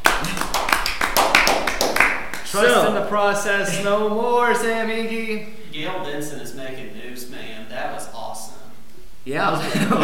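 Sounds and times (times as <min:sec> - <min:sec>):
hand claps: 0:00.0 - 0:02.6
speech: 0:02.5 - 0:08.2, 0:09.2 - 0:10.0.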